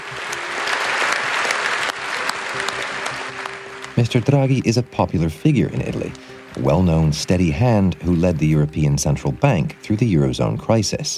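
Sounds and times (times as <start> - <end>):
parliamentarians' lengthy round of applause: 0.0 - 4.2
speech: 4.0 - 11.1.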